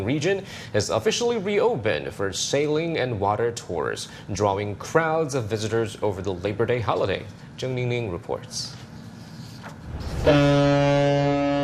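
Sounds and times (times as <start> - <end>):
speech: 0.0 - 8.8, 10.2 - 11.2
cruise ship horns echoing over Tianchi Lake: 10.2 - 11.6.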